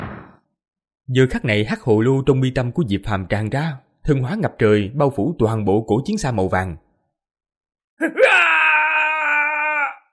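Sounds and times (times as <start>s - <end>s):
speech: 1.1s - 6.8s, 8.0s - 8.3s
agonized wailing screams: 8.0s - 10.1s.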